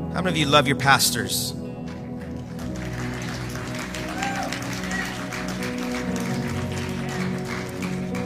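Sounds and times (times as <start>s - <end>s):
speech: 0.2s - 1.6s
crowd golf clapping: 1.8s - 8.2s.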